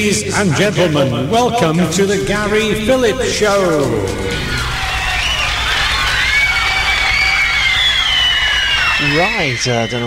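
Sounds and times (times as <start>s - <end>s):
speech: 0.0s - 4.7s, 9.0s - 10.0s
crowd cheering: 2.2s - 10.0s.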